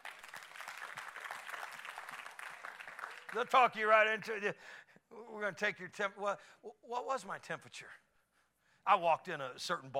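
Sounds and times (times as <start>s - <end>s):
audience applause: 0.0s - 3.6s
speech: 3.3s - 8.0s, 8.8s - 9.9s.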